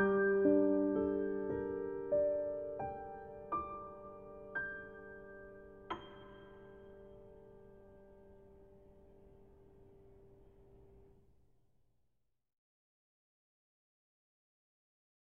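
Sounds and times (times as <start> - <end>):
piano: 0.0 - 11.2.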